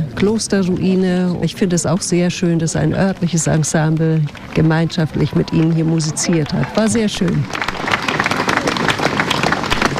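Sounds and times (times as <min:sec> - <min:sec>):
speech: 0:00.2 - 0:08.1
crowd long audience applause: 0:03.2 - 0:09.9.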